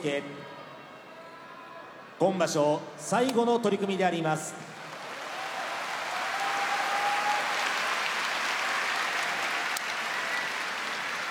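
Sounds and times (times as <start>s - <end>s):
speech: 0.0s - 0.6s, 2.2s - 4.7s
arena audience applause: 4.8s - 11.2s.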